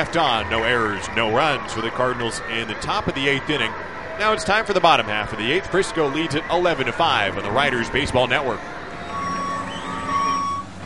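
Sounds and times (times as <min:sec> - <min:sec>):
speech: 0:00.0 - 0:08.8
construction equipment reversing beeps: 0:08.9 - 0:10.8.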